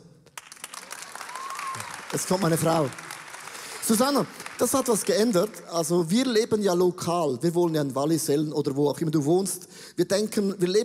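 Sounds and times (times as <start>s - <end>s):
applause: 0.2s - 5.9s
speech: 2.1s - 3.0s, 3.9s - 10.8s.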